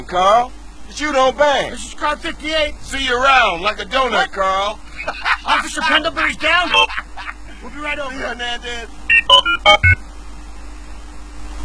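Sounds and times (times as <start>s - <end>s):
speech: 0.1s - 7.0s, 7.6s - 10.0s
laughter: 4.8s - 8.5s
electronic beeping tones: 9.1s - 10.0s.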